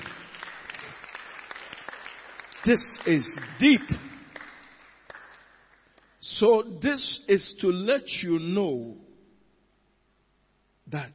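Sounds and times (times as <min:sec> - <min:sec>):
audience clapping hands: 0:00.0 - 0:06.2
speech: 0:02.6 - 0:04.1, 0:06.4 - 0:09.0, 0:10.9 - 0:11.1.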